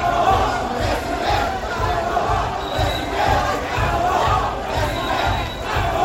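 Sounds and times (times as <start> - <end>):
crowd chanting political slogans: 0.0 - 6.0.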